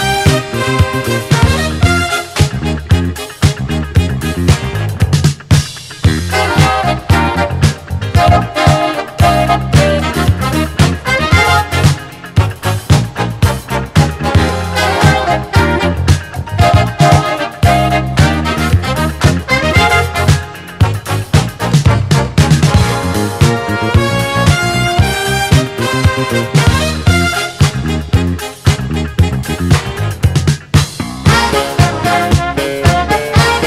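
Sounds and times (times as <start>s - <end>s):
jazz orchestra playing: 0.0s - 5.0s, 6.1s - 30.2s, 31.2s - 33.6s.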